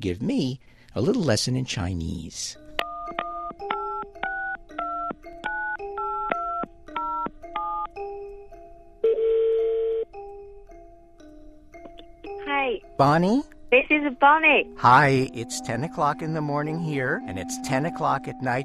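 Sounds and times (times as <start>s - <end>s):
speech: 0.0s - 2.6s, 13.0s - 18.6s
telephone touch-tone beeps as a number is dialed: 2.8s - 7.9s
buzzy telephone ring tone: 2.8s - 8.2s, 9.0s - 10.2s.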